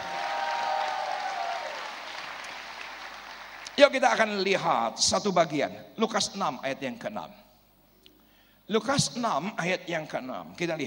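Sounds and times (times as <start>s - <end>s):
audience applause: 0.0s - 3.8s
speech: 3.8s - 7.4s, 8.7s - 10.8s.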